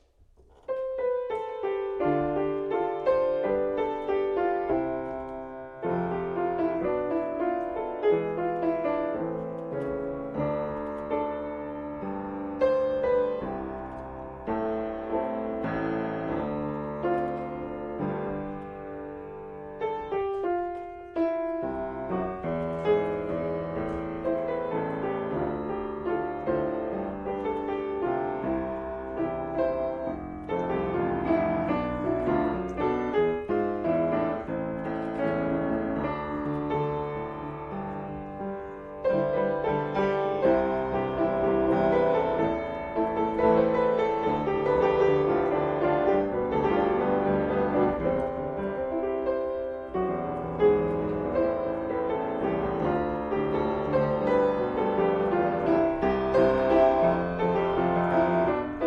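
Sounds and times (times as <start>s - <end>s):
piano: 0.0s - 58.8s.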